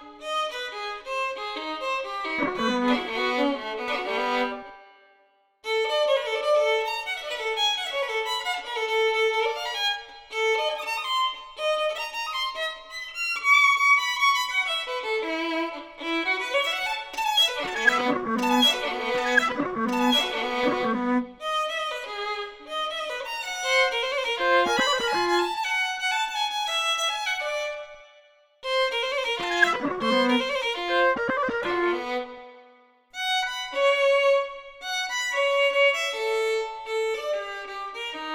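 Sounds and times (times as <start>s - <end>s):
violin: 0.0s - 38.3s
electronics: 2.4s - 3.2s, 17.4s - 21.3s, 24.6s - 25.5s, 29.4s - 32.1s.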